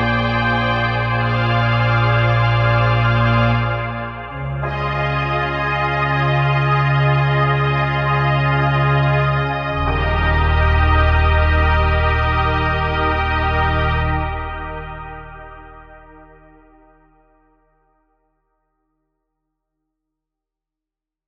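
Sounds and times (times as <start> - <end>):
trumpets: 0.0 - 16.7.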